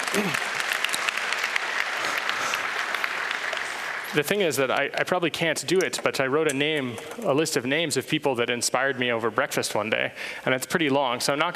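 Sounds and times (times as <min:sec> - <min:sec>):
audience applause: 0:00.0 - 0:04.8
speech: 0:04.1 - 0:11.5.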